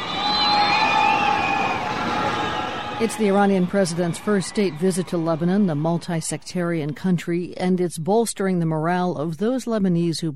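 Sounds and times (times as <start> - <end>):
people shouting in a crowd in Lebanon: 0.0 - 6.0
crowd in Lebanon cheering Iranian President Mahmoud Ahmadinejad on arrival: 0.0 - 7.2
speech: 3.0 - 10.3.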